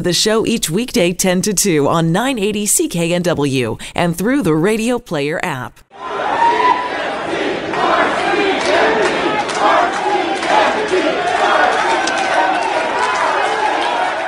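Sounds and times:
speech: 0:00.0 - 0:06.7
loud crowd shouting at a Surrey City Council meeting at Surrey City Hall: 0:05.9 - 0:14.2.

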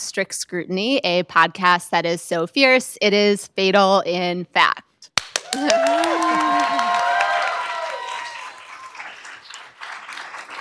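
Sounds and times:
speech: 0:00.2 - 0:04.9, 0:05.5 - 0:06.8
live legal-commentary show audience applause: 0:05.3 - 0:10.5
high whoop: 0:05.4 - 0:09.1.

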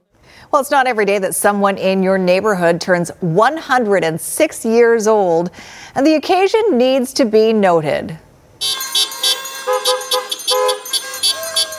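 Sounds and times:
speech: 0:00.5 - 0:08.2
car horns honking: 0:08.6 - 0:11.7.

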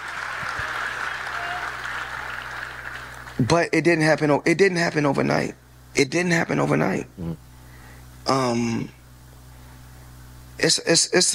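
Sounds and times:
audience applause: 0:00.0 - 0:03.4
speech: 0:03.4 - 0:07.5, 0:08.2 - 0:09.0, 0:10.6 - 0:11.3.

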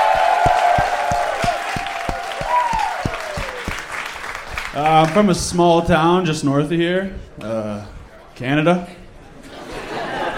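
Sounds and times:
crowd shouts and whistle-like cheers: 0:00.0 - 0:04.5
crowd clapping: 0:00.0 - 0:05.6
speech: 0:04.8 - 0:09.0
laughter: 0:09.4 - 0:10.3.

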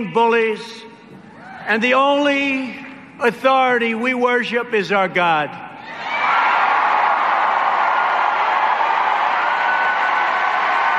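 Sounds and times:
speech: 0:00.0 - 0:00.9, 0:01.6 - 0:05.6
audience applause: 0:06.1 - 0:10.9.

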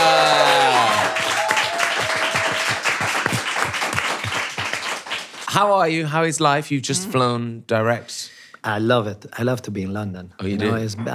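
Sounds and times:
audience applause: 0:00.0 - 0:05.6
speech: 0:05.5 - 0:11.1.

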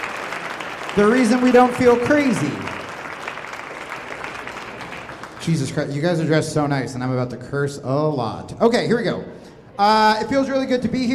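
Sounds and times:
audience applause: 0:00.0 - 0:05.8
speech: 0:01.0 - 0:02.7, 0:05.5 - 0:11.1.

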